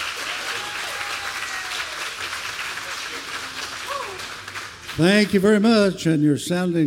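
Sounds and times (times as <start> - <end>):
audience applause at outdoor folk festival: 0.0 - 5.6
faint cheers and voices: 0.2 - 2.0, 3.1 - 4.4
speech: 5.0 - 6.8.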